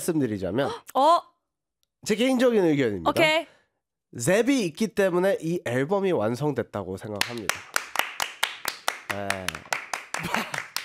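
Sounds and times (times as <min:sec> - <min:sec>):
speech: 0:00.0 - 0:01.3, 0:02.0 - 0:03.5, 0:04.1 - 0:07.8, 0:09.1 - 0:10.6
hands clapping: 0:07.2 - 0:10.8.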